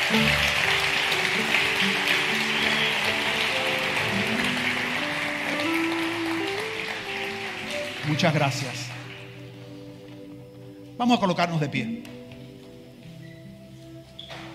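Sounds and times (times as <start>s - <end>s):
audience applause: 0.0s - 9.6s
speech: 0.1s - 0.5s, 8.1s - 8.8s, 11.0s - 12.2s.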